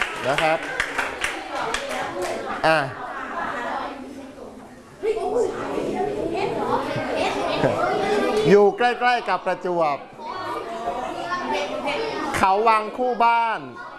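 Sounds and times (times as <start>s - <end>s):
group of children clapping for a classmate: 0.0s - 2.5s
children chattering: 0.0s - 13.9s
speech: 0.2s - 0.8s, 1.6s - 3.0s, 6.7s - 10.1s, 11.5s - 13.9s.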